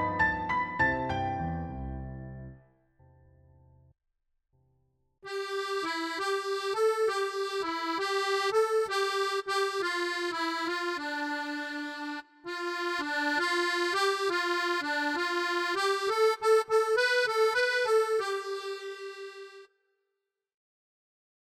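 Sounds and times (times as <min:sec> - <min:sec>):
musical instrument recordings: 0:00.0 - 0:02.6, 0:05.3 - 0:19.6.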